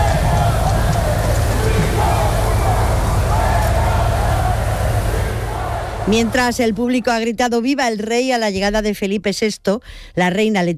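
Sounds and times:
crowd booing: 0.0 - 6.8
speech: 6.1 - 10.7.

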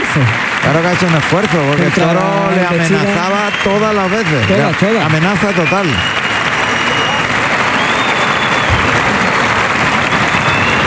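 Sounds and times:
bullfight crowd ovation: 0.0 - 10.8
speech: 0.2 - 6.2.

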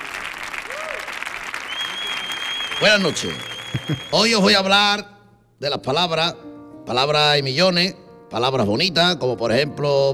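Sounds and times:
audience applause: 0.0 - 4.6
speech: 2.8 - 10.1.

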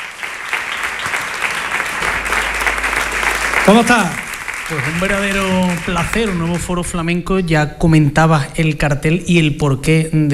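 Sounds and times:
audience applause: 0.0 - 7.0
speech: 3.7 - 10.3.

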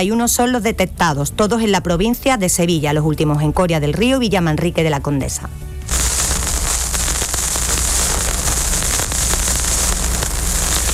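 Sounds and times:
speech: 0.0 - 6.1
vinyl record needle crackle: 5.9 - 10.9.

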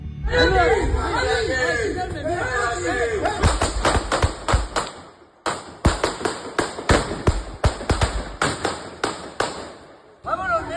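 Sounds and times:
overlapping voices: 0.3 - 5.0
gunshots fired at police officers: 3.2 - 10.2.

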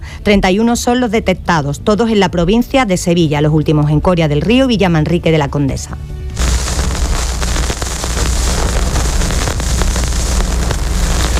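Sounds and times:
speech: 0.2 - 6.2
vinyl record needle crackle before music: 6.4 - 11.3.

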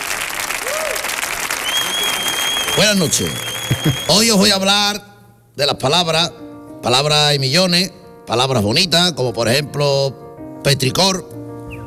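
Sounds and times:
crowd applause: 0.0 - 4.4
faint cheering and whistles: 0.6 - 4.4
speech: 2.8 - 11.3.

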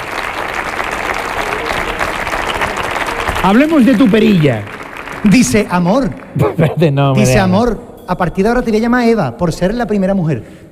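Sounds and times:
audience applause: 0.0 - 6.6
speech: 3.4 - 10.7.

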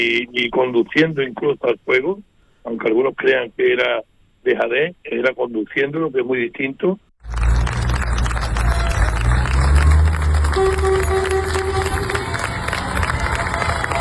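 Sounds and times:
speech: 0.0 - 7.5
townspeople cheering farewell to military emergency firefighters: 7.2 - 14.0.

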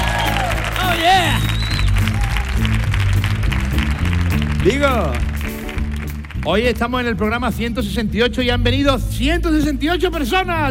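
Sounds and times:
studio audience applauding and cheering: 0.0 - 7.6
speech: 4.6 - 5.3, 6.4 - 10.6.

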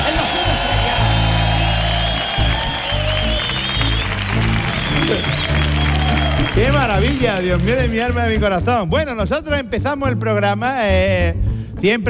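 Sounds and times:
live studio audience at a comedy show cheering and applauding: 0.0 - 8.4
speech: 7.2 - 12.0.

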